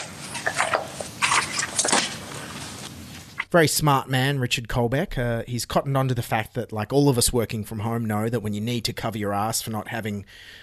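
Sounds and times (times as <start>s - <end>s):
pages turning: 0.0s - 3.5s
speech: 3.5s - 10.6s.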